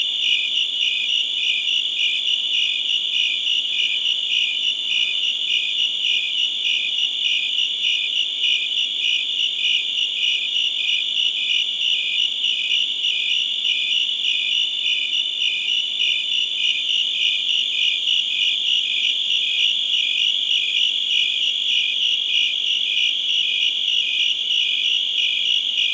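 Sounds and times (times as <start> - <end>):
crickets chirping in chorus: 0.0 - 25.9.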